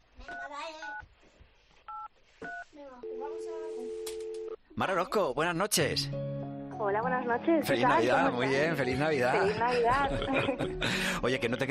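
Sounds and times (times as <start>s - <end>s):
speech: 0.2s - 1.4s, 4.8s - 11.7s
telephone keypad dual-tone beeps: 1.9s - 4.6s
steady telephone tone: 3.0s - 4.6s
laughter: 8.8s - 11.5s.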